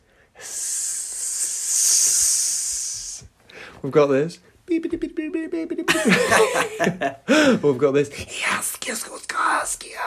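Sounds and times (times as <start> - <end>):
voice hissing in imitation of snake language: 0.4 - 3.4
speech: 3.8 - 8.4
laughter: 5.7 - 7.5.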